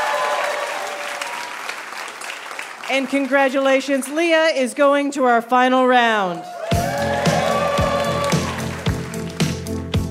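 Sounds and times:
audience applause for game show contestants: 0:00.0 - 0:04.2, 0:06.4 - 0:09.9
speech: 0:02.9 - 0:06.5.

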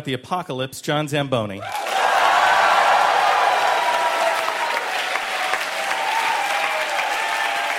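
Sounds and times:
speech: 0:00.0 - 0:01.9
audience applauding loudly: 0:01.6 - 0:07.7.

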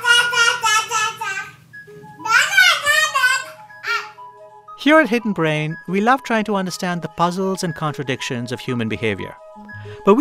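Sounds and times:
babies babbling in high sing-song voices: 0:00.0 - 0:01.6, 0:02.2 - 0:04.2
speech: 0:04.8 - 0:10.2.

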